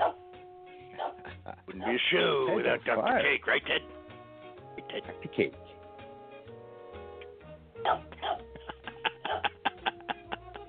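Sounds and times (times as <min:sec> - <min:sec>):
dog barking: 0:00.0 - 0:00.2, 0:00.9 - 0:02.0, 0:07.8 - 0:08.5
speech: 0:01.5 - 0:04.0, 0:05.0 - 0:05.7, 0:07.8 - 0:08.4
laughter: 0:08.0 - 0:10.6.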